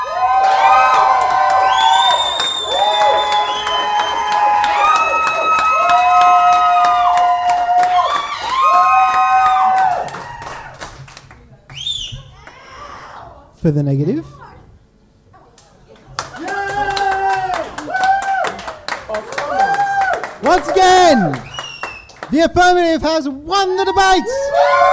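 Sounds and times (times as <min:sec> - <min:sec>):
audience cheering for the affirmative side in a debate vote: 0:00.0 - 0:10.9, 0:16.3 - 0:22.3, 0:23.6 - 0:24.9
audience clapping: 0:00.0 - 0:12.6, 0:15.6 - 0:22.9
speech: 0:13.6 - 0:14.4, 0:22.6 - 0:24.9.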